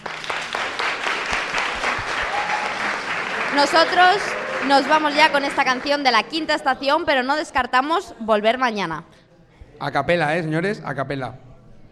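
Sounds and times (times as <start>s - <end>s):
audience applause: 0.0s - 6.6s
speech: 3.6s - 9.1s, 9.8s - 11.4s.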